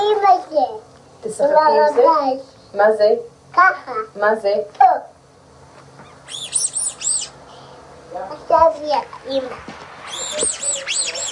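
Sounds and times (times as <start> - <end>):
speech: 0.3 - 5.1, 8.1 - 9.8, 10.4 - 11.2
duck chirping, possibly a toy: 6.0 - 7.4, 10.0 - 11.3.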